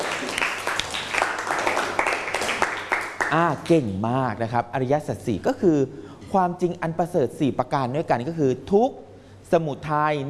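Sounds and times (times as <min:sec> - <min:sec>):
classroom applause: 0:00.0 - 0:03.4
speech: 0:03.3 - 0:10.2.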